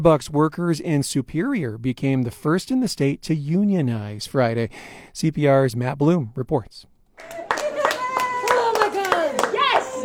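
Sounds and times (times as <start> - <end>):
speech: 0.0 - 7.4
Starbucks coffee shop workers clapping in their store lobby: 7.2 - 10.0
Starbucks coffee shop workers whooping in their store lobby in Superior: 7.2 - 10.0.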